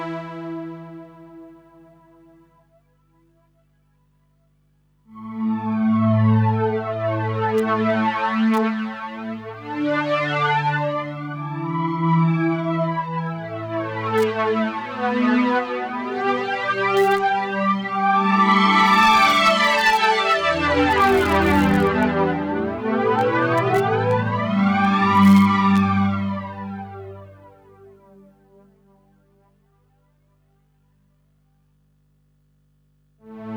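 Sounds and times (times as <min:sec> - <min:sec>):
SE50 flanger strings: 0:05.2 - 0:27.2.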